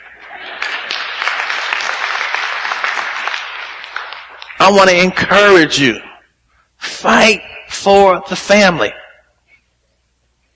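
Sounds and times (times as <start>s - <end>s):
audience clapping: 0.0s - 5.2s
speech: 4.7s - 6.1s, 7.0s - 9.0s.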